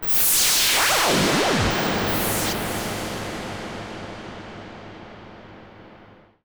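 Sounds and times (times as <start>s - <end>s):
Virus noise: 0.0s - 6.4s.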